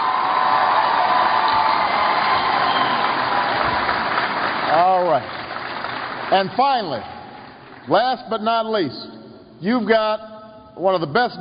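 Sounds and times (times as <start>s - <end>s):
audience applause: 0.0s - 7.9s
speech: 6.3s - 7.1s, 7.9s - 11.3s.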